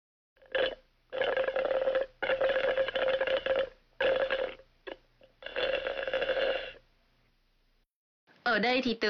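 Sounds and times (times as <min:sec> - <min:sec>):
juice slurped through a straw: 0:00.4 - 0:06.8.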